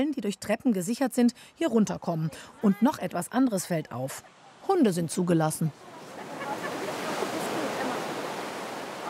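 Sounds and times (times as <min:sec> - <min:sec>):
speech: 0:00.0 - 0:05.9
ocean surf washing onto a beach: 0:04.1 - 0:09.0.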